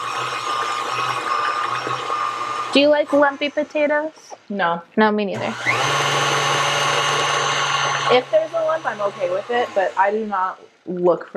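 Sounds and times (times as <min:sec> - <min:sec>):
electric hand mixer whirring through boiled potatoes, mashing them: 0:00.0 - 0:04.4, 0:05.4 - 0:10.6
speech: 0:02.8 - 0:06.0, 0:08.1 - 0:11.3.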